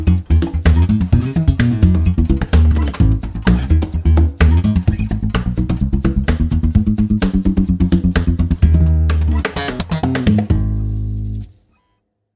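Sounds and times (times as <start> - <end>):
acoustic funky music: 0.0 - 11.6.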